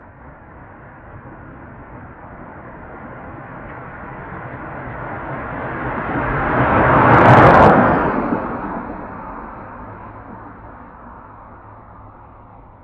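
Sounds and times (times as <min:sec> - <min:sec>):
car passing fast in a desert: 0:03.3 - 0:11.7.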